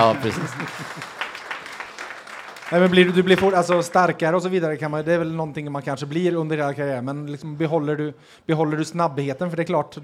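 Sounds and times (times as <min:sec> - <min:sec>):
speech: 0:00.0 - 0:01.2, 0:02.7 - 0:10.0
laughter: 0:00.0 - 0:01.6
applause: 0:00.0 - 0:04.2.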